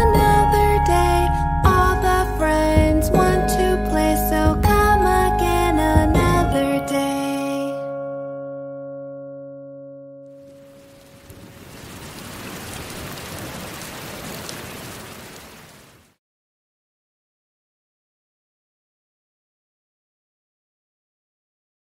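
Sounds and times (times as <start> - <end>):
nursery rhyme song in English: 0.0 - 9.1.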